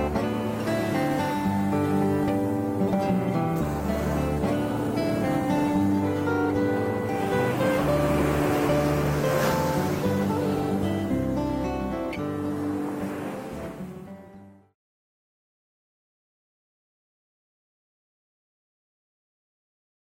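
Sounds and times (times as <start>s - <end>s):
ocean: 0.0s - 14.6s
relaxing Hawaiian instrumental music: 0.0s - 14.6s.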